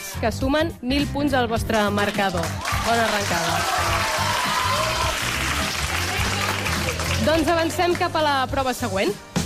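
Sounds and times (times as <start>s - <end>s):
speech: 0.2s - 4.3s, 7.2s - 9.3s
audience applause: 2.0s - 8.1s.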